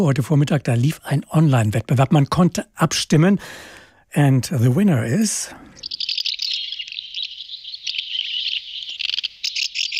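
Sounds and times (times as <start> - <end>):
speech: 0.0 - 5.6
house martin calls: 5.7 - 9.9.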